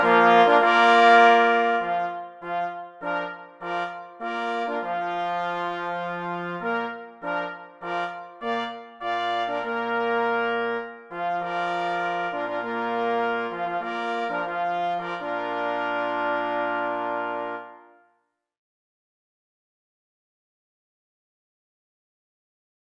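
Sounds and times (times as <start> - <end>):
hunting call on two pless horns and two parforce horns: 0.0 - 18.0.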